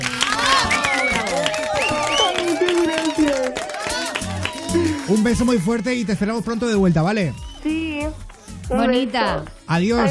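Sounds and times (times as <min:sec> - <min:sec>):
studio audience applause: 0:00.0 - 0:07.0
speech: 0:05.3 - 0:10.0.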